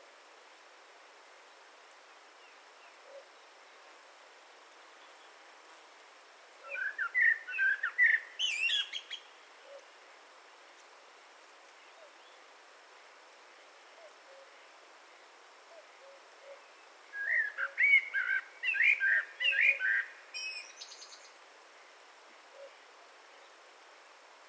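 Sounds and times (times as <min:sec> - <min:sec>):
Eurasian blackbird warbling song: 0:06.6 - 0:09.8, 0:16.5 - 0:21.4.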